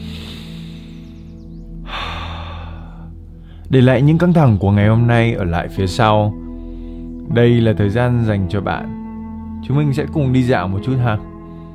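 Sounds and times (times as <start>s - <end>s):
deep breath drawn in during a guided meditation: 0.0s - 1.2s, 1.8s - 3.7s, 6.5s - 7.2s
speech: 3.7s - 6.4s, 7.3s - 9.0s, 9.6s - 11.3s.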